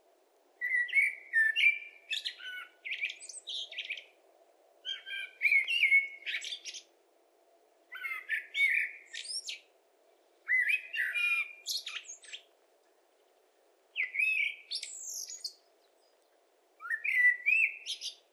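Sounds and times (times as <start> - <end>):
common blackbird singing: 0.6 - 4.2, 4.8 - 6.9, 7.9 - 9.7, 10.5 - 12.5, 14.0 - 18.3.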